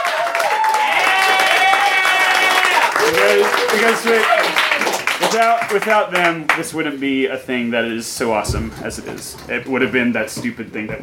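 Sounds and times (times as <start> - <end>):
audience cheering: 0.0 - 5.9
audience applause: 0.0 - 6.6
speech: 3.2 - 4.6, 5.2 - 11.0.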